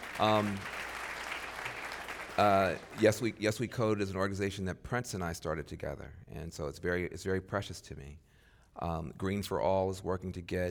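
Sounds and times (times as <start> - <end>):
audience applause: 0.0 - 3.4
speech: 0.2 - 0.8, 2.4 - 10.6.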